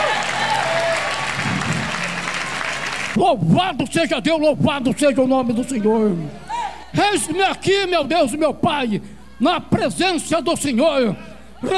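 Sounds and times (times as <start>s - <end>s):
audience applauding: 0.0s - 3.2s
speech: 3.2s - 11.7s.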